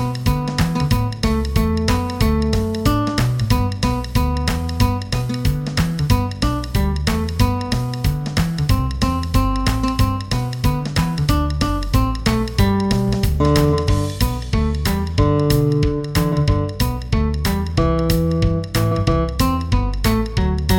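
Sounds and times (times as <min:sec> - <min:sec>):
guitar picking in G major: 0:00.0 - 0:20.7.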